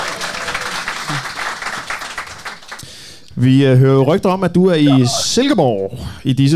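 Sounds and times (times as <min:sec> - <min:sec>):
group applause: 0:00.0 - 0:03.2
speech: 0:03.4 - 0:06.5.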